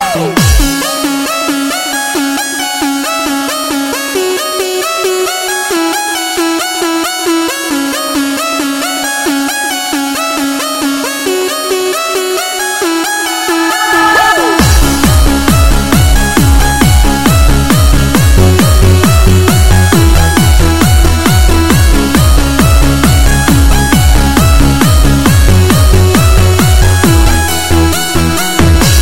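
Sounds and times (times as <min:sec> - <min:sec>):
electro music: 0:00.0 - 0:29.0.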